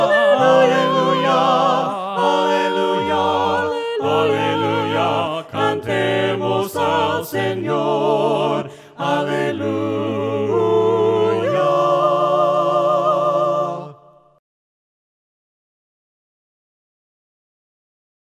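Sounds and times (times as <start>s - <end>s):
voices singing hymns a cappella: 0.0s - 14.3s.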